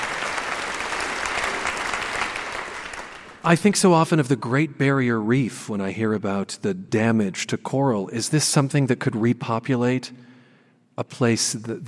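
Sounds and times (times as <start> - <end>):
audience applause: 0.0 - 3.4
speech: 3.4 - 10.3, 11.0 - 11.8.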